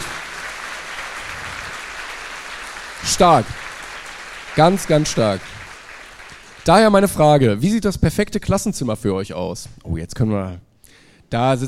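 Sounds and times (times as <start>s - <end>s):
applause: 0.0s - 7.2s
speech: 3.0s - 3.6s, 4.6s - 5.6s, 6.6s - 10.7s, 11.3s - 11.6s.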